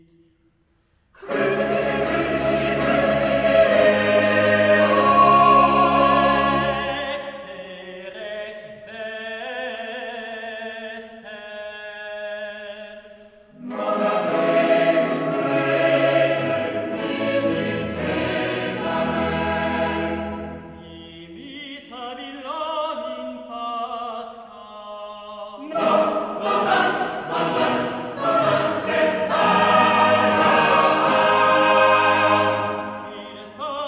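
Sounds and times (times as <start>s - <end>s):
choir singing: 1.2s - 8.8s, 13.5s - 21.6s, 25.6s - 33.8s.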